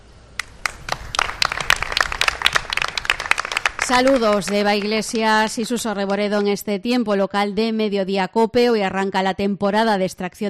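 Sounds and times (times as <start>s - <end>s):
applause after a minute of silence: 0.4s - 6.5s
speech: 3.9s - 10.4s.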